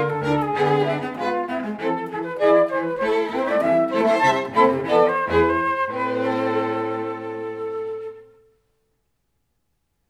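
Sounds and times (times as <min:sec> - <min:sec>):
flute quartet playing: 0:00.0 - 0:08.4.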